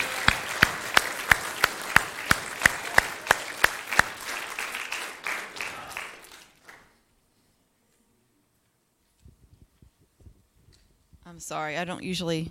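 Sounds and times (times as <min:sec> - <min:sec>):
audience applause in steady rhythmic unison: 0:00.0 - 0:07.0
speech: 0:11.4 - 0:12.4.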